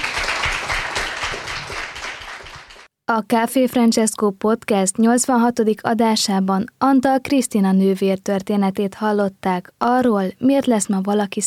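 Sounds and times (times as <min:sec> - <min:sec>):
audience applause: 0:00.0 - 0:02.9
speech: 0:03.1 - 0:11.4.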